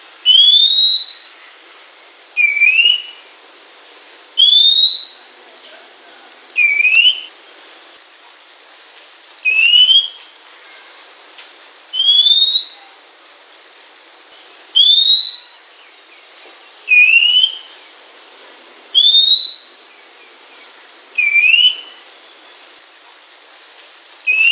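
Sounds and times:
Oriental magpie-robin singing clear slightly rising whistles: 0:00.2 - 0:01.3, 0:02.4 - 0:03.2, 0:04.4 - 0:05.2, 0:06.6 - 0:07.3, 0:09.4 - 0:10.3, 0:11.9 - 0:12.9, 0:14.8 - 0:15.6, 0:16.9 - 0:17.8, 0:19.0 - 0:19.8, 0:21.2 - 0:22.0, 0:24.3 - 0:24.5.

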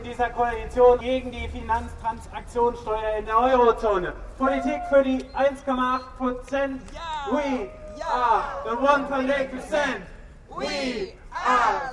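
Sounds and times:
speech: 0:00.2 - 0:11.9
person urging on protesters through a megaphone: 0:04.4 - 0:11.9
protesters dressed as bankers and lobbyists cheering at a satirical demonstration: 0:07.0 - 0:09.3.

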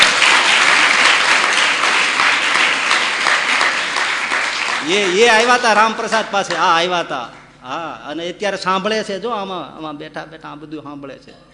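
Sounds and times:
audience applauding at a Gujarati devotional discourse: 0:00.0 - 0:06.7
speech: 0:04.9 - 0:11.5.

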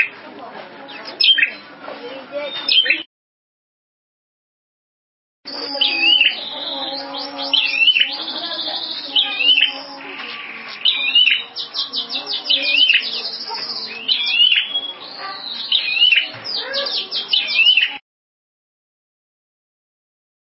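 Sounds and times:
prinia song with trilling: 0:00.8 - 0:03.1, 0:05.5 - 0:18.0.

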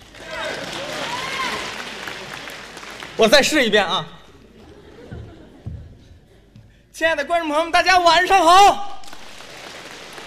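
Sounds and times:
audience applause: 0:00.0 - 0:03.6, 0:09.0 - 0:10.2
speech: 0:03.2 - 0:04.2, 0:07.0 - 0:08.9
laughter: 0:04.3 - 0:06.7.

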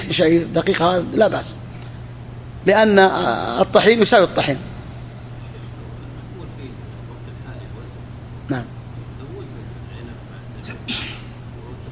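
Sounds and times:
speech: 0:00.1 - 0:01.7, 0:02.6 - 0:04.7
person sneezing during a lecture: 0:10.6 - 0:11.4.

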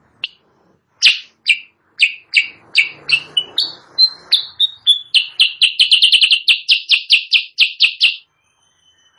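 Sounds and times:
sooty-headed bulbul chirping, training song for caged birds: 0:01.0 - 0:08.3.

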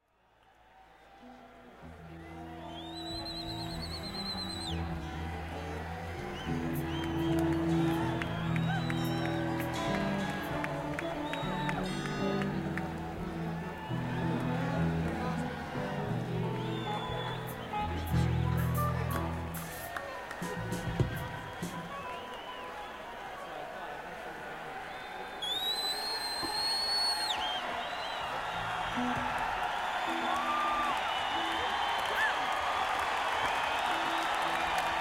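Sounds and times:
crowd: 0:00.0 - 0:34.9.

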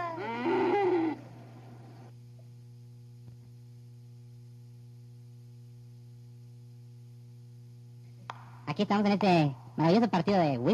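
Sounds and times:
cow mooing: 0:00.0 - 0:01.2
speech: 0:08.7 - 0:10.7.

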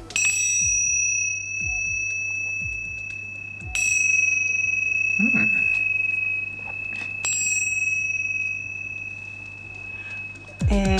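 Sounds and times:
small Buddhist ritual bells ringing: 0:00.0 - 0:10.9.

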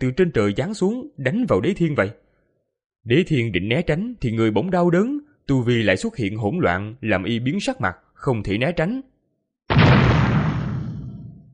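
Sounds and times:
speech: 0:00.0 - 0:02.2, 0:03.0 - 0:09.1
huge explosion sound effect: 0:09.7 - 0:11.5.

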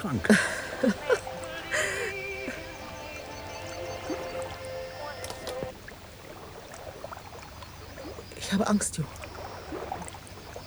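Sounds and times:
speech: 0:00.0 - 0:01.1, 0:08.6 - 0:09.2
laughter: 0:00.0 - 0:05.7
water splashing: 0:00.0 - 0:10.6
person humming faintly: 0:00.3 - 0:03.5.

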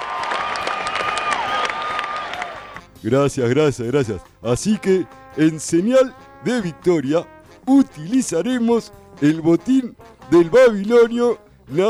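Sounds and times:
crowd cheering after a victory speech: 0:00.0 - 0:02.8
audience clapping in a staged comic drama scene: 0:00.0 - 0:02.9
speech: 0:03.0 - 0:11.8.

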